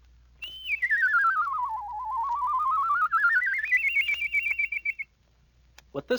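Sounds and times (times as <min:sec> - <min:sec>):
whistling at different pitches: 0:00.4 - 0:05.1.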